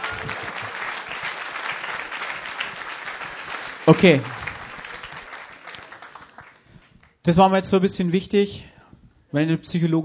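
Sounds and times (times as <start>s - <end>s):
audience applause: 0.0s - 7.2s
speech: 3.9s - 4.3s, 7.2s - 8.7s, 9.3s - 10.0s.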